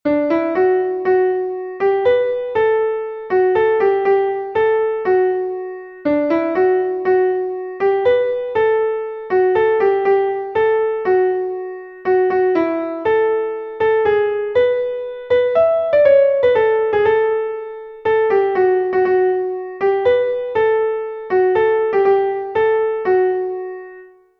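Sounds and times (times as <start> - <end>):
piano: 0.0 - 24.3.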